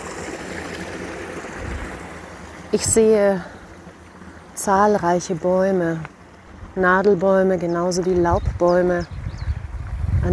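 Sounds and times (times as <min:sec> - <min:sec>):
water flowing down a small waterfall into white foam: 0:00.0 - 0:06.8
speech: 0:02.7 - 0:03.6, 0:04.6 - 0:06.1, 0:06.8 - 0:09.2.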